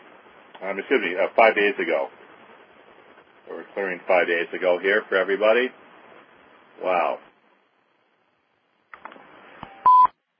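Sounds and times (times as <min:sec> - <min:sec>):
speech: 0:00.6 - 0:02.2, 0:03.5 - 0:05.8, 0:06.8 - 0:07.3
telephone beep: 0:09.6 - 0:10.2.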